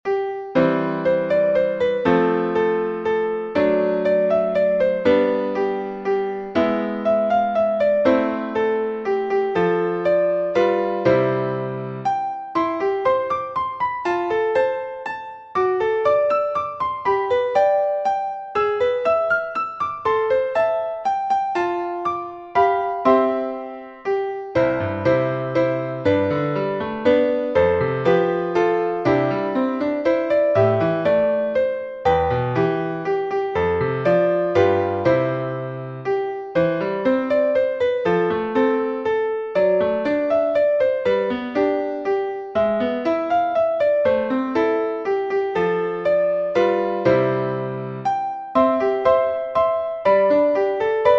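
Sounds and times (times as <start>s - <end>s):
piano: 0.0s - 51.1s.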